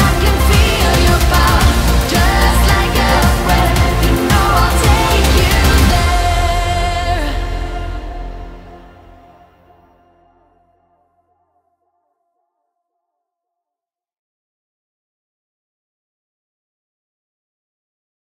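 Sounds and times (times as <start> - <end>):
epic music: 0.0 - 10.9.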